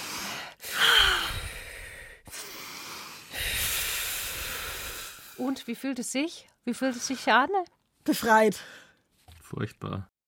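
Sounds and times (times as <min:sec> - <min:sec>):
deep breathing: 0:00.0 - 0:05.4
speech: 0:05.4 - 0:08.8, 0:09.5 - 0:10.1.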